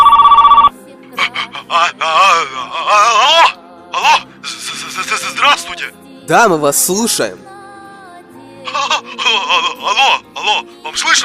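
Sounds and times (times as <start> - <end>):
telephone ringing, incoming call: 0.0 - 0.7
laughter: 1.2 - 5.7, 8.7 - 10.7
speech: 6.3 - 7.5, 11.0 - 11.2.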